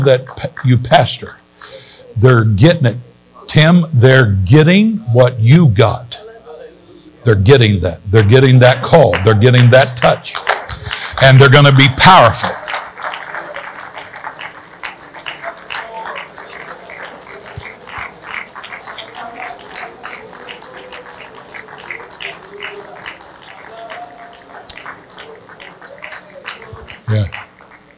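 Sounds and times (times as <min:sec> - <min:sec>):
speech: 0:00.0 - 0:06.2, 0:07.2 - 0:10.5, 0:11.2 - 0:12.6
voices murmuring: 0:06.2 - 0:07.4, 0:12.6 - 0:27.9
audience clapping: 0:08.2 - 0:27.9.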